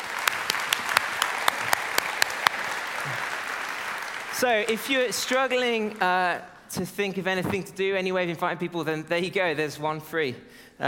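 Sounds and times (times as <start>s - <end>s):
audience applause: 0.0s - 6.3s
speech: 4.4s - 10.8s.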